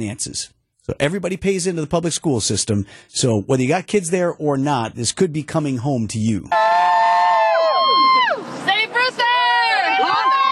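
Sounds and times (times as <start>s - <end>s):
speech: 0.0s - 7.0s
parents cheering at a rally: 6.5s - 10.5s.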